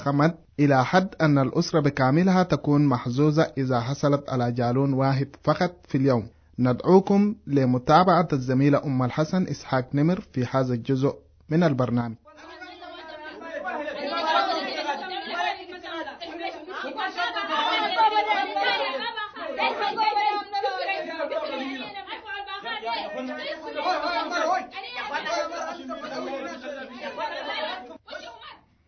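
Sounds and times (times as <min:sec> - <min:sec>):
speech: 0:00.0 - 0:12.2
crowd quarrelling at a water source in Darfur: 0:12.3 - 0:28.8.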